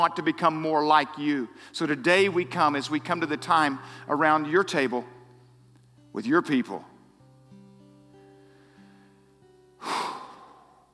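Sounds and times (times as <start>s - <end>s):
speech: 0.0s - 5.2s, 6.1s - 6.9s
deep breath: 3.8s - 4.1s, 8.3s - 10.9s.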